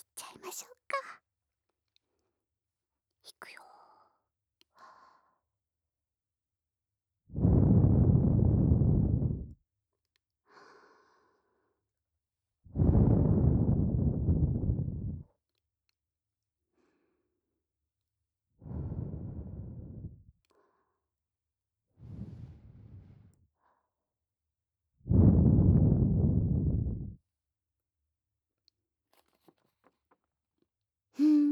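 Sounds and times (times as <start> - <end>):
speech: 0.4 - 1.1
soft breaths blown into the listener's left and right ears: 7.4 - 9.5, 12.8 - 15.2, 18.6 - 20.3, 22.0 - 23.4, 25.1 - 27.2.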